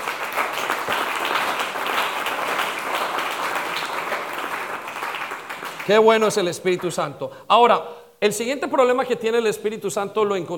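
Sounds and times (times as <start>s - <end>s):
audience applause: 0.0s - 6.3s
speech: 5.9s - 10.5s.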